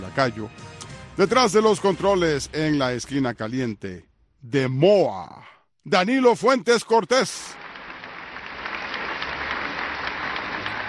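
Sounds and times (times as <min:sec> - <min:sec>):
speech: 0:00.1 - 0:07.6
people applauding: 0:07.3 - 0:10.8.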